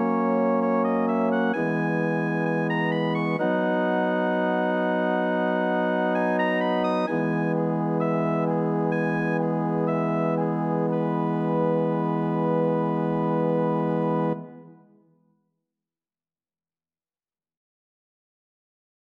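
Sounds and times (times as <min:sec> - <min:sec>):
romantic organ piece: 0:00.0 - 0:15.0.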